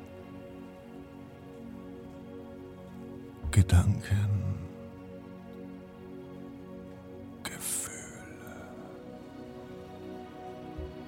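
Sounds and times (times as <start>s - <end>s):
fire crackling and hissing: 0.0s - 11.0s
speech: 3.6s - 4.4s.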